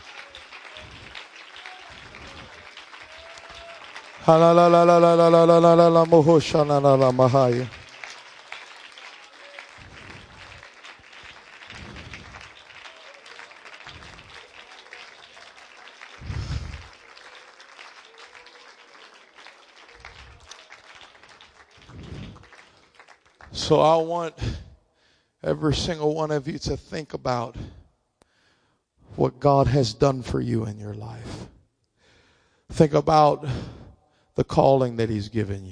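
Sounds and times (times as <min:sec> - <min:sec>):
audience clapping hands: 0:00.0 - 0:24.2
speech: 0:04.2 - 0:07.8, 0:23.7 - 0:24.6, 0:25.4 - 0:27.6, 0:29.2 - 0:31.4, 0:32.7 - 0:33.8, 0:34.4 - 0:35.7.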